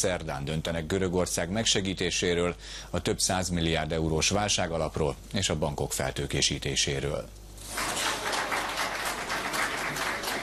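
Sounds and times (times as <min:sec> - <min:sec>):
speech: 0:00.0 - 0:08.0
applause in a press room: 0:07.6 - 0:10.4.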